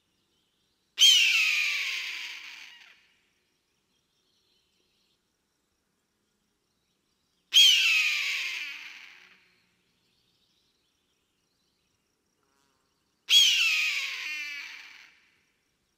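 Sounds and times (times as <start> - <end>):
eagle screaming: 1.0 - 3.0, 7.6 - 9.3, 13.3 - 15.2.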